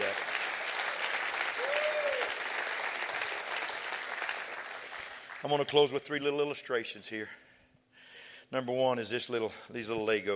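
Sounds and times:
audience clapping hands: 0:00.0 - 0:05.9
speech: 0:05.4 - 0:07.4, 0:08.5 - 0:10.3.

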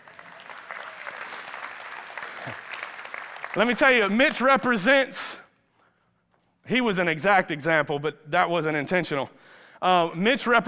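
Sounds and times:
crowd applauding: 0:00.0 - 0:04.3
speech: 0:02.5 - 0:02.7, 0:03.6 - 0:05.4, 0:06.7 - 0:10.6.

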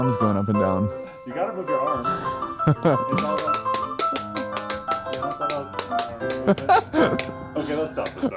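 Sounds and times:
speech: 0:00.0 - 0:03.7, 0:05.4 - 0:08.3
laughter: 0:02.1 - 0:08.3
tap dance time step: 0:03.2 - 0:07.4.

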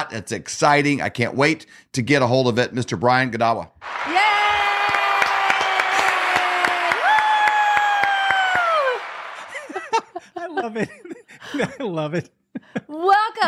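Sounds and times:
speech: 0:00.0 - 0:04.4, 0:10.6 - 0:13.4
crowd applause: 0:03.8 - 0:10.2
laughter: 0:08.9 - 0:13.4.

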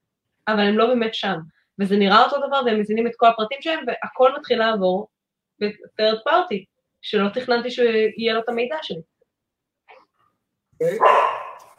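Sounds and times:
speech: 0:00.5 - 0:09.1, 0:10.8 - 0:11.4
female pet dog barking: 0:10.8 - 0:11.7.

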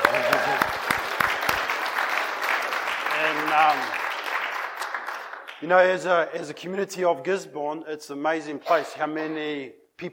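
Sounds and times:
audience clapping: 0:00.0 - 0:06.1
speech: 0:03.6 - 0:04.0, 0:05.6 - 0:10.1.

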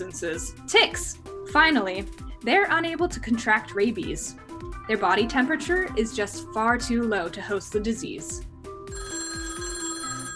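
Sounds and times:
speech: 0:00.0 - 0:08.5
telephone ringing: 0:08.9 - 0:10.3.

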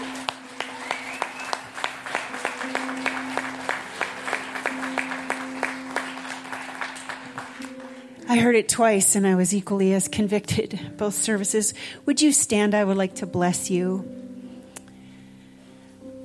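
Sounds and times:
audience applauding: 0:00.0 - 0:08.2
speech: 0:08.3 - 0:14.2.

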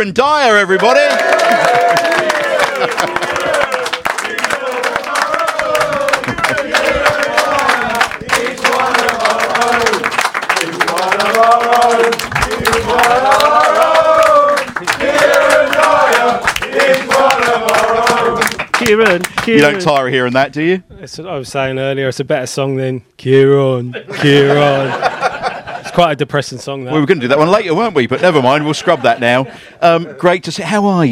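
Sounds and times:
speech: 0:00.0 - 0:03.7, 0:18.9 - 0:25.3, 0:26.0 - 0:31.1
crowd cheering: 0:00.7 - 0:20.1
audience applause: 0:00.8 - 0:20.1
laughter: 0:01.0 - 0:05.9, 0:23.8 - 0:30.4.

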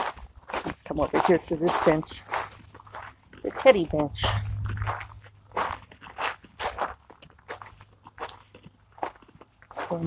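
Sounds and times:
crunching footsteps walking outdoors: 0:00.0 - 0:10.0
speech: 0:01.0 - 0:02.4, 0:03.5 - 0:05.0
faint low hum: 0:03.9 - 0:05.9.

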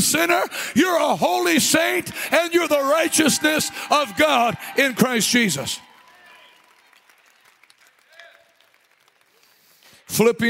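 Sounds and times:
speech: 0:00.0 - 0:05.9, 0:10.1 - 0:10.4
scattered voices and faint cheers: 0:00.9 - 0:06.7
audience clapping: 0:01.7 - 0:10.4.

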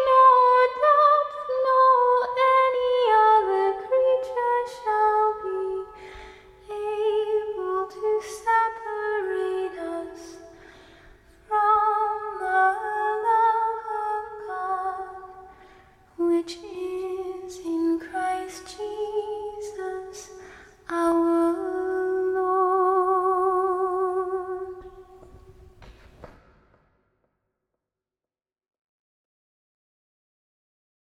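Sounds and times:
a cappella scripture singing: 0:00.0 - 0:10.6, 0:11.4 - 0:15.6, 0:16.2 - 0:25.4.

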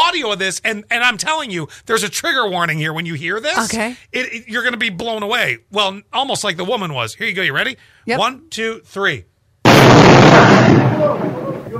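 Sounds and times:
speech: 0:00.2 - 0:09.3
boulder crashing through a living room: 0:09.7 - 0:11.7
rumbling debris: 0:09.7 - 0:11.7.

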